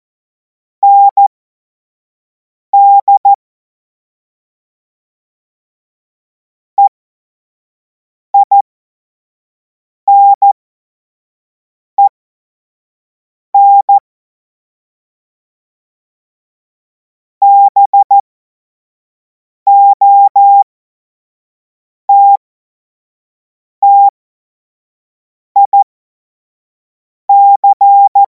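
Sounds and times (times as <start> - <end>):
CW Morse code beeps: 0.8 - 1.2, 2.8 - 3.3, 8.4 - 8.6, 10.1 - 10.4, 13.6 - 14.0, 17.4 - 18.2, 19.7 - 20.6, 22.1 - 22.4, 23.8 - 24.1, 25.6 - 25.8, 27.3 - 28.3.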